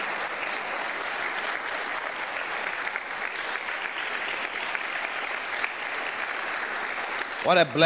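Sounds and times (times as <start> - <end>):
audience applause: 0.0 - 7.8.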